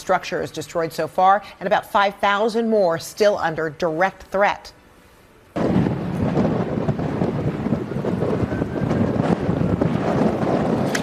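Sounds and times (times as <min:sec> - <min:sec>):
speech: 0:00.1 - 0:04.8
fierce howling winds: 0:05.6 - 0:11.0.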